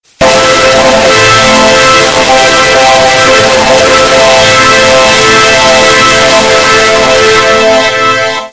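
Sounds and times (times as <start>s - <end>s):
loud fanfare: 0.0s - 8.5s.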